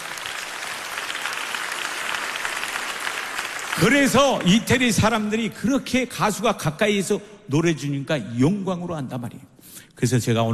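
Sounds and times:
crowd clapping: 0.0 - 5.3
speech: 3.8 - 10.5.

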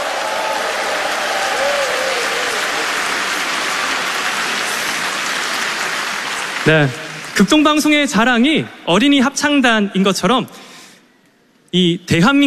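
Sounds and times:
audience applause: 0.0 - 7.8
speech: 6.6 - 10.6, 11.7 - 12.4.

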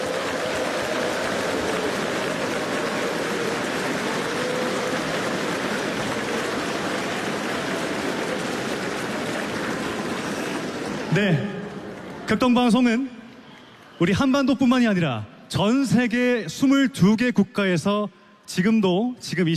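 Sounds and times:
applause from a large crowd: 0.0 - 14.4
speech: 11.1 - 11.5, 12.3 - 13.1, 14.0 - 19.5.

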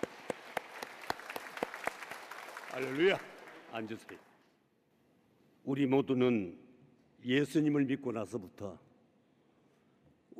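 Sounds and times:
rhythmic clapping during a church service: 0.0 - 4.3
speech: 2.8 - 4.3, 5.6 - 8.8.

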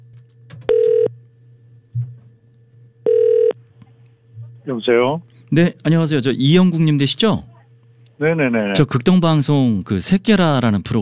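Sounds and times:
telephone ringback tone: 0.7 - 1.1, 3.0 - 3.6
speech: 4.7 - 7.5, 8.2 - 11.0.

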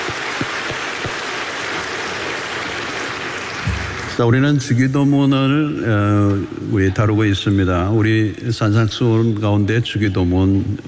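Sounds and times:
audience applause: 0.0 - 4.8
speech: 4.2 - 10.8.

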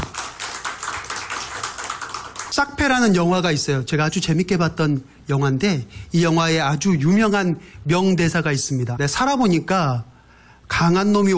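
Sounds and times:
church congregation clapping in praise: 0.0 - 3.2
speech: 2.6 - 10.1, 10.7 - 11.3.

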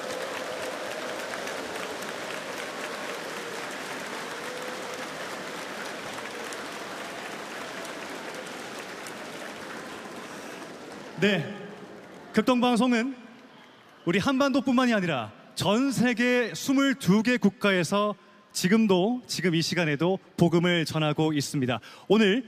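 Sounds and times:
audience applause: 0.0 - 14.2
speech: 11.2 - 11.5, 12.4 - 13.2, 14.1 - 22.4.

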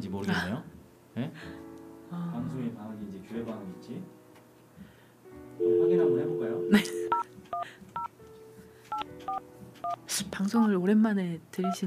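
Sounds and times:
speech: 0.0 - 4.2, 5.3 - 7.8, 9.0 - 11.8
telephone keypad dialing beeps: 6.5 - 8.1, 8.9 - 10.0.

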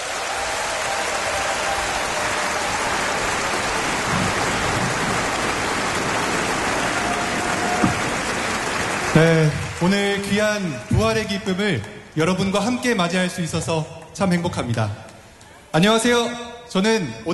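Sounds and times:
audience applause: 0.0 - 10.9
speech: 9.2 - 15.0, 15.7 - 17.3.

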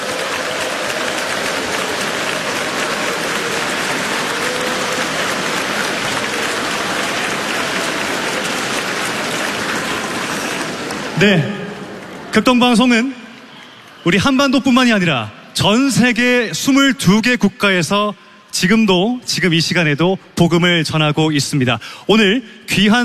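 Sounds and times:
audience applause: 0.0 - 15.1
speech: 11.2 - 11.6, 12.4 - 13.2, 14.0 - 23.0.

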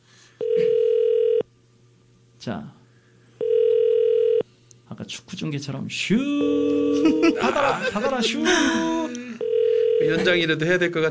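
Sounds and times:
ringback tone of an outgoing telephone call: 0.4 - 1.4, 3.4 - 4.4, 9.4 - 10.2
speech: 2.4 - 2.8, 4.9 - 9.1, 10.0 - 11.0
laughter: 6.9 - 9.4.

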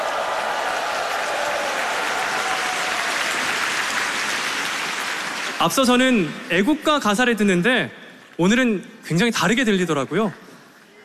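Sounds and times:
audience applause for children's choir: 0.0 - 6.4
speech: 5.6 - 10.4.

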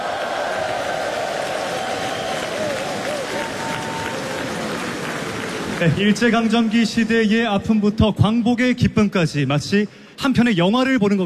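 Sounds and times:
large audience applause: 0.0 - 6.7
speech: 5.8 - 11.2.

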